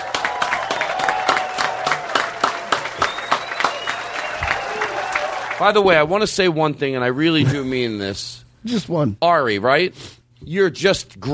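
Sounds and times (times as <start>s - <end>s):
comedy club audience applause: 0.0s - 5.8s
speech: 5.6s - 11.3s.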